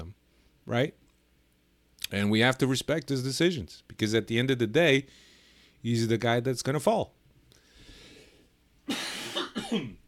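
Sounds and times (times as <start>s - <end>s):
speech: 0.7s - 1.0s, 2.1s - 7.2s
harsh coughs: 8.9s - 10.0s.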